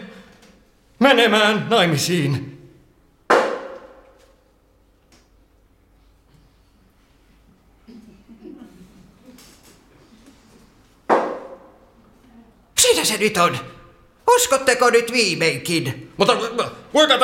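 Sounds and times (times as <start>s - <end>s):
speech: 1.0s - 2.6s, 13.1s - 13.8s, 14.4s - 17.2s
loud knocks answering a séance question: 3.3s - 4.2s, 11.1s - 11.8s.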